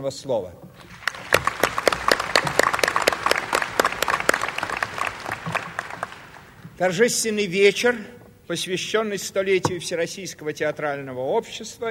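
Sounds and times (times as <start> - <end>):
speech: 0.0 - 1.0, 6.8 - 11.8
audience applause: 0.8 - 6.7.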